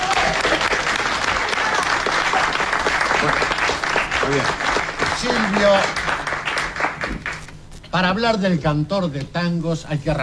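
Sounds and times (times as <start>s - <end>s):
audience applause: 0.0s - 7.5s
speech: 4.3s - 4.6s, 5.2s - 6.0s, 8.0s - 10.2s.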